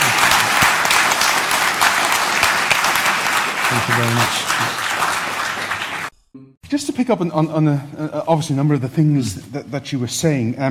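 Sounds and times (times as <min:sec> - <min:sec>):
audience round of applause: 0:00.0 - 0:06.1
speech: 0:03.8 - 0:05.1, 0:06.7 - 0:10.6.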